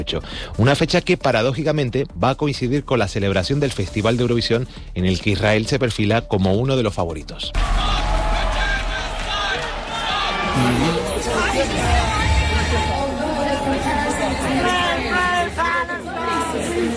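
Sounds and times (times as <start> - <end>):
speech: 0.0 - 8.1, 10.6 - 11.0
audience shouting at Israel's Eurovision Song Contest performance: 7.6 - 16.9.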